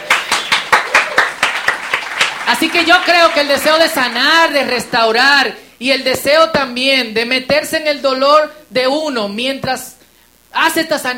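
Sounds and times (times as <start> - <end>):
audience applause: 0.0 - 4.8
speech: 2.5 - 11.1.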